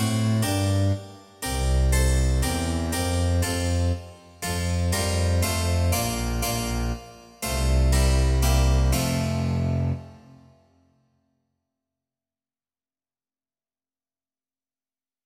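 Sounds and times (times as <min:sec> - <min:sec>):
double bass: 0:00.0 - 0:10.0
harpsichord: 0:00.0 - 0:10.5.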